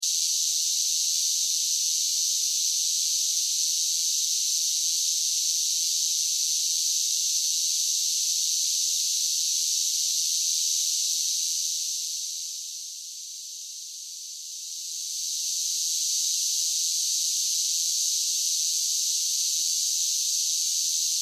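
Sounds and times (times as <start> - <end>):
large group of cicadas singing: 0.0 - 12.6, 14.7 - 21.1.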